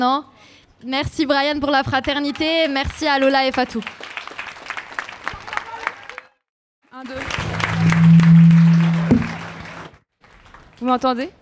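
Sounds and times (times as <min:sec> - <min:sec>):
speech: 0:00.0 - 0:04.1, 0:07.0 - 0:07.3, 0:10.8 - 0:11.4
audience applause: 0:04.0 - 0:06.2
steady low hum: 0:07.2 - 0:09.9.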